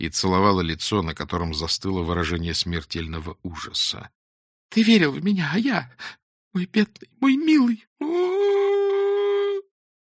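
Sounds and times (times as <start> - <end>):
speech: 0.0 - 8.3
grieving woman howling like a wolf over a dead body: 8.0 - 9.7.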